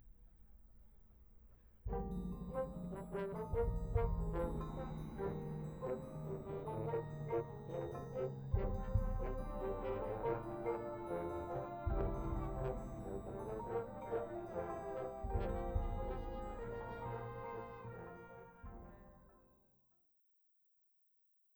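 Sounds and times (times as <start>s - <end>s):
drum corps moving: 1.9s - 7.4s, 8.1s - 17.8s.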